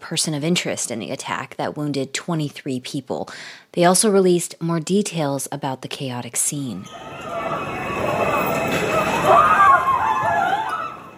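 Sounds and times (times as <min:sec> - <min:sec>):
speech: 0:00.1 - 0:07.6, 0:09.2 - 0:09.6
high-pitched cries: 0:06.8 - 0:11.1
panicked crowd fleeing a smoke-filled subway train: 0:06.8 - 0:11.1.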